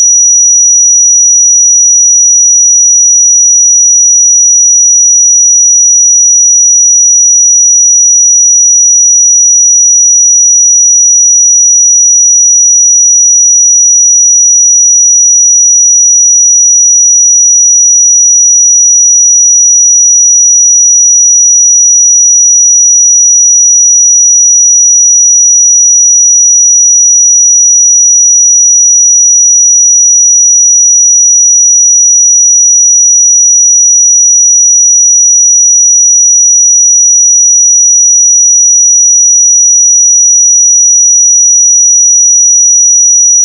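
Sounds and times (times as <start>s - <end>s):
pure sine tone at 5830 Hz: 0.0s - 43.4s.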